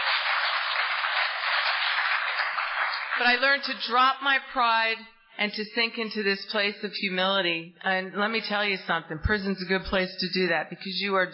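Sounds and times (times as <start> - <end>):
audience applause: 0.0 - 3.4
speech: 3.2 - 11.3.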